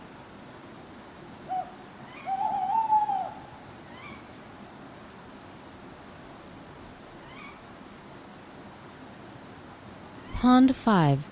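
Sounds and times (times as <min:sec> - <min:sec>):
owl hooting: 0:01.5 - 0:04.4, 0:07.2 - 0:07.7
speech: 0:10.4 - 0:11.3.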